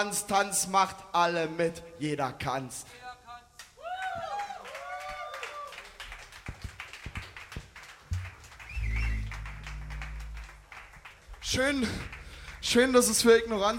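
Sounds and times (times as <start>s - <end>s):
speech: 0.0s - 3.0s, 11.5s - 13.7s
audience applause: 4.0s - 13.7s.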